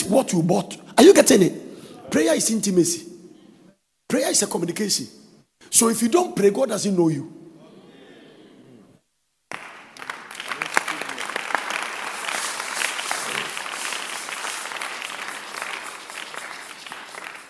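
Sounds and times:
speech: 0.1 - 3.1, 4.1 - 7.4
audience clapping: 9.5 - 17.4.

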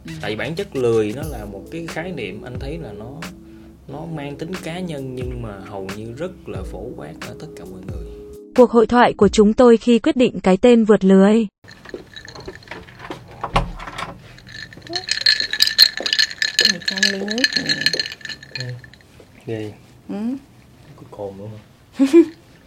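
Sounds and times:
speech: 0.1 - 8.0, 8.6 - 11.8, 19.4 - 20.5, 21.2 - 22.4
glass of fermented sticky rice drink rattling and clinking while being prepared: 11.6 - 19.2.

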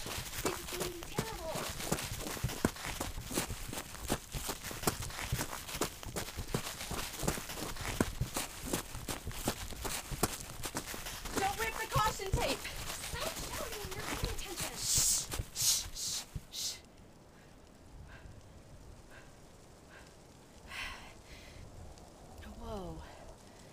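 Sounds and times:
people talking: 0.0 - 1.8, 11.3 - 16.8, 22.4 - 23.1
running footsteps on the ground at Colonial Jamestowne: 0.0 - 16.8.

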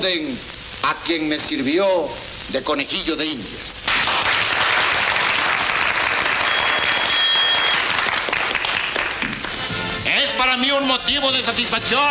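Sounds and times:
speech: 0.0 - 4.3, 10.4 - 12.0
audience applause: 3.9 - 9.6
whistles: 6.4 - 7.9.

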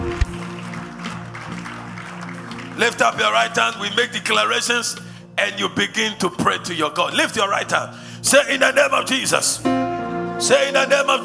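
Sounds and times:
audience clapping hands as clap offering: 0.0 - 5.1
sustained low musical tones: 0.0 - 11.2
speech: 2.8 - 9.8, 10.4 - 11.2.

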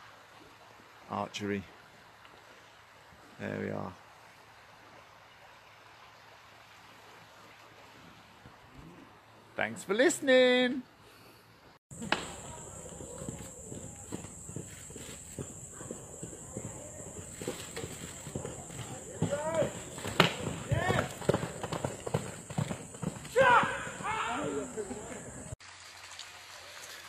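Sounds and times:
speech: 1.1 - 1.8, 3.4 - 4.0, 9.6 - 10.9
horse hooves clip-clopping: 11.9 - 25.6.

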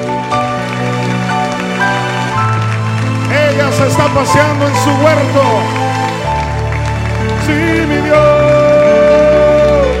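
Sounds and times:
applause: 0.0 - 9.9
speech: 4.1 - 6.1, 7.5 - 8.6.

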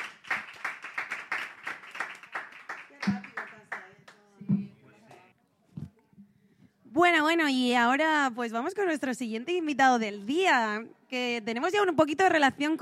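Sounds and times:
applause: 0.0 - 4.4
speech: 7.0 - 12.8.

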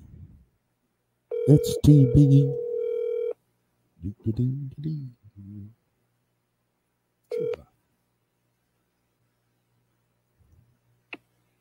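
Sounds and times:
low electrical hum: 0.0 - 11.5
phone line ringing tone: 1.3 - 3.4, 7.3 - 7.7
speech: 1.5 - 2.6, 4.0 - 5.8.

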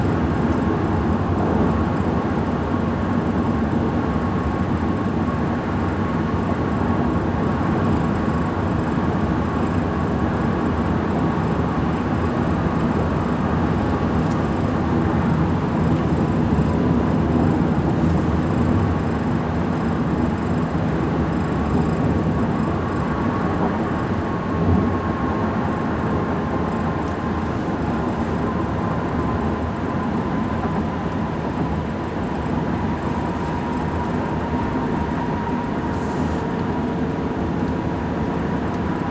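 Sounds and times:
highway road noise in a Ford F-150 pickup truck: 0.0 - 39.0
faint humming tone: 28.9 - 37.4.

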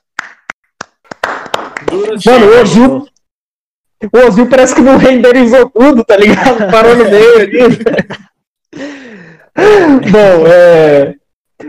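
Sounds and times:
hands clapping: 0.0 - 2.3
speech: 1.8 - 3.1, 4.0 - 9.0, 9.6 - 11.6
laughter: 6.2 - 8.4.

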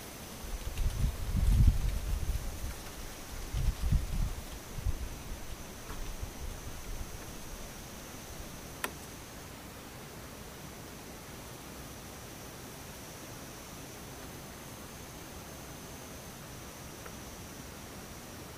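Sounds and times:
insects buzzing in the daytime: 0.0 - 18.5
soft even hiss: 0.0 - 18.5.

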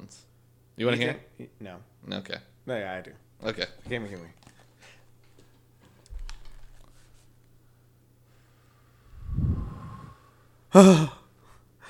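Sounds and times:
speech: 0.1 - 4.4, 10.7 - 11.2
low hum: 9.0 - 10.5
voice imitating wind: 9.1 - 10.2.

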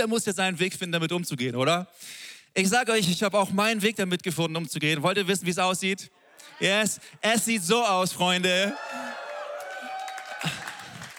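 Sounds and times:
speech: 0.0 - 9.2
cheering: 6.3 - 11.1
audience applause: 8.3 - 11.1.

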